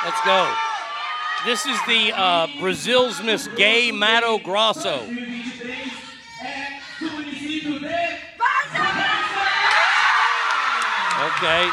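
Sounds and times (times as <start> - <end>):
speech: 0.0 - 0.7, 1.4 - 6.6, 11.3 - 11.7
crowd cheering: 0.0 - 5.1, 8.4 - 11.7.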